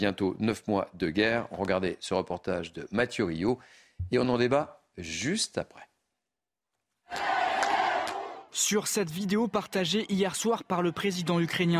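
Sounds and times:
speech: 0.0 - 5.9, 7.1 - 7.4, 8.5 - 11.7
Kherson residents cheering Ukrainian troops after the Russian withdrawal: 7.1 - 8.5.

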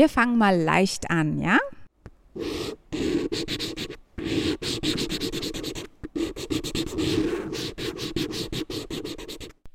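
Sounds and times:
speech: 0.0 - 1.7, 2.4 - 3.8
pen scratching on rough paper: 2.4 - 9.6.

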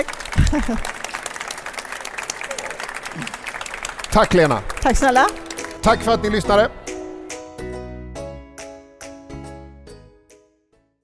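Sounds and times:
speech: 0.0 - 1.0, 3.2 - 3.4, 4.1 - 6.8
audience applause: 0.0 - 6.1.

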